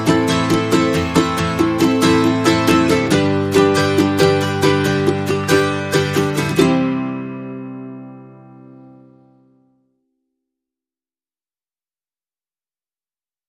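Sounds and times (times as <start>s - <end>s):
ukulele music: 0.0s - 9.6s.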